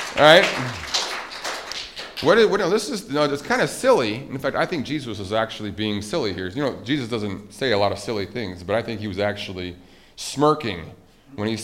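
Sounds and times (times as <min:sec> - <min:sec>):
audience applause: 0:00.0 - 0:02.5
speech: 0:00.2 - 0:00.8, 0:02.2 - 0:11.6.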